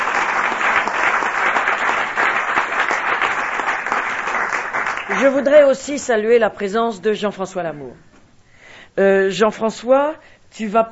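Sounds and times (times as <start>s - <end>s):
audience applauding at a UMP political meeting in France: 0.0s - 5.5s
speech: 5.1s - 8.1s, 9.0s - 10.9s.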